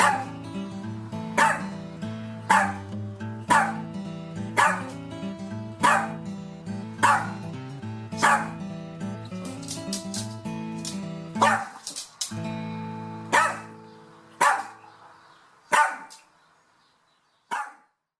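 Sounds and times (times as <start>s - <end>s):
Bichon frise barking: 0.0s - 0.4s, 1.3s - 1.8s, 2.4s - 5.0s, 5.8s - 6.3s, 7.0s - 7.5s, 8.2s - 8.6s, 11.4s - 11.8s, 13.3s - 14.9s, 15.7s - 16.2s, 17.5s - 18.0s.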